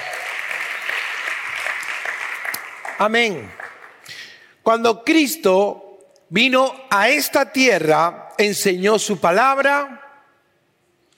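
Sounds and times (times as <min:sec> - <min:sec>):
audience applauding: 0:00.0 - 0:04.3
speech: 0:03.0 - 0:10.0.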